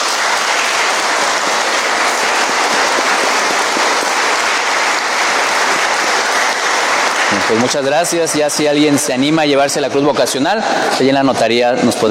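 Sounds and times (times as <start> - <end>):
audience applauding: 0.0 - 9.4
speech: 7.5 - 12.1.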